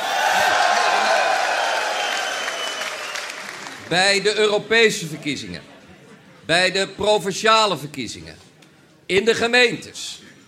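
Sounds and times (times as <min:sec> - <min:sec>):
campaign supporters at a party election gathering clapping and cheering: 0:00.0 - 0:04.0
speech: 0:03.9 - 0:05.7, 0:06.5 - 0:08.5, 0:09.1 - 0:10.2.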